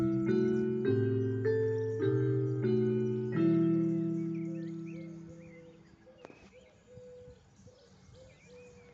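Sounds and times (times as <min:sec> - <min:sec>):
carillon bells: 0:00.0 - 0:05.7.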